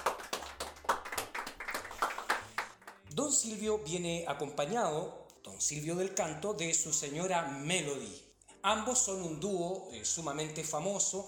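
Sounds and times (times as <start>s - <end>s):
group applauding: 0.0s - 3.1s
speech: 3.2s - 11.2s.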